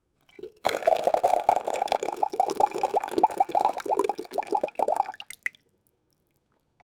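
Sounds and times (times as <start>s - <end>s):
slurping water through a straw: 0.2s - 5.6s.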